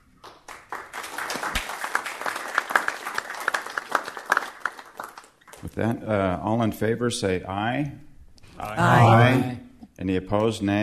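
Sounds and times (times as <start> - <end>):
audience applause: 0.2 - 5.6
speech: 5.8 - 8.1, 8.8 - 10.8.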